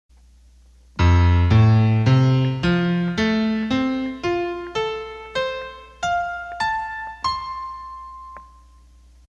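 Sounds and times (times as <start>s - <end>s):
piano: 0.9s - 9.2s.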